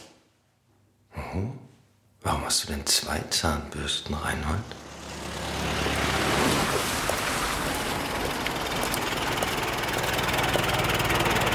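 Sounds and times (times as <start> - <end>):
speech: 1.4 - 5.4
car engine idling: 4.6 - 11.5.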